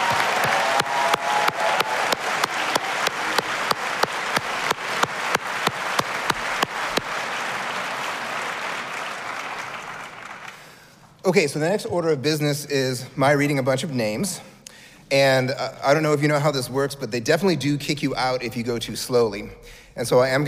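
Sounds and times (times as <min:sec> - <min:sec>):
audience round of applause: 0:00.0 - 0:10.8
speech: 0:11.3 - 0:14.5, 0:15.1 - 0:20.4.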